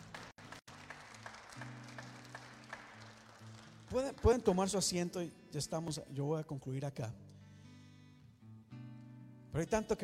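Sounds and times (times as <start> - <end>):
audience applause: 0.0 - 4.6
speech: 3.9 - 7.2, 9.6 - 10.0.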